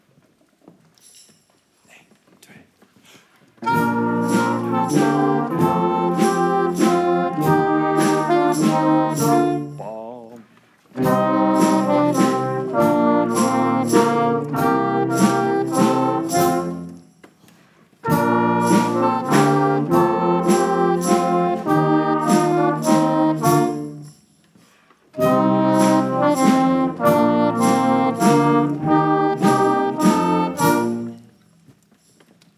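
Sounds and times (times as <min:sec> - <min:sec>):
waltz music: 0:03.6 - 0:10.4, 0:11.0 - 0:17.0, 0:18.0 - 0:24.1, 0:25.2 - 0:31.3.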